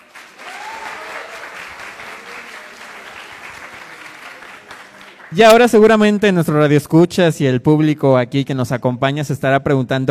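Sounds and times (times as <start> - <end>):
audience applause: 0.0 - 5.8
speech: 5.3 - 10.0.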